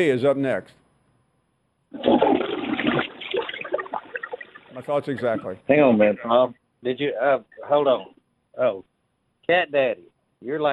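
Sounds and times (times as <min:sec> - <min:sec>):
speech: 0:00.0 - 0:00.8, 0:01.9 - 0:02.4, 0:04.8 - 0:08.9, 0:09.5 - 0:10.7
toilet flushing: 0:02.0 - 0:04.7.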